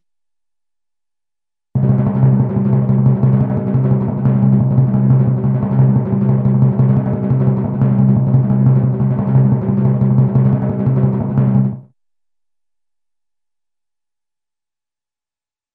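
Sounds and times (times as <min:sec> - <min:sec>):
long suspenseful cartoon timpani drum roll: 0:01.8 - 0:11.9.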